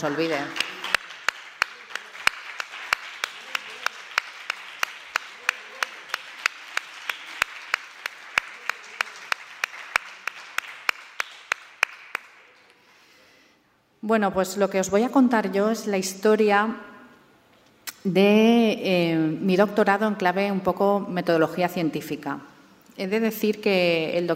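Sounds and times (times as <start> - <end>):
speech: 0.0 - 0.6, 14.1 - 16.9, 18.0 - 24.3
audience applause: 0.0 - 12.7.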